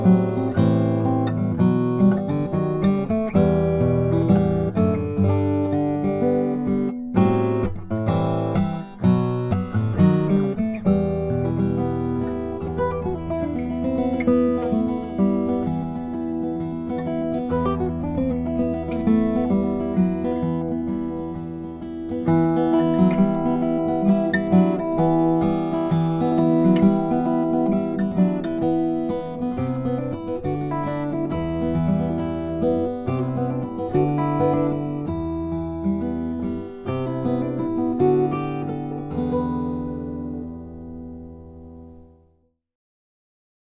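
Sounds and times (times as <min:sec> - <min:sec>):
Indian rosewood acoustic guitar: 0:00.0 - 0:42.5.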